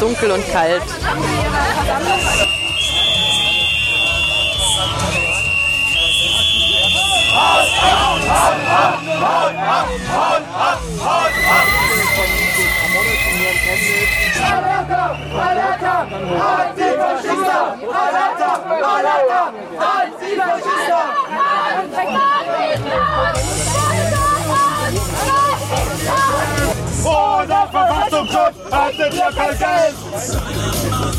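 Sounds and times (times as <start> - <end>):
speech: 0.0 - 2.9, 7.4 - 24.1, 27.0 - 31.1
crowd voices and chatter at a counter-demonstration: 0.0 - 31.1
people shouting at a demonstration: 6.6 - 29.5.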